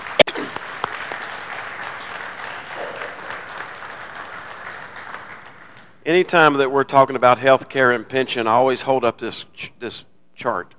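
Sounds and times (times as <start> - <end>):
audience applause: 0.0 - 5.8
speech: 6.1 - 10.7.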